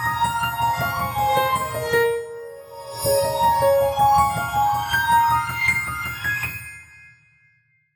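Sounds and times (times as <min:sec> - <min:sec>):
abstract ringtone: 0:00.2 - 0:06.4.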